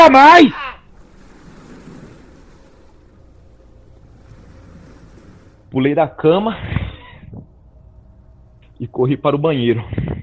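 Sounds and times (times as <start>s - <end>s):
speech: 0.0s - 0.6s, 5.7s - 7.4s, 8.8s - 10.2s
sea waves crashing: 0.0s - 6.0s.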